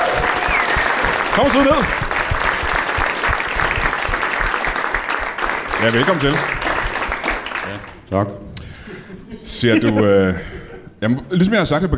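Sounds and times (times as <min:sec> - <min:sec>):
audience applause on a Danish evening show: 0:00.0 - 0:08.0
speech: 0:01.4 - 0:02.0, 0:05.8 - 0:06.6, 0:07.7 - 0:08.5, 0:09.4 - 0:11.9.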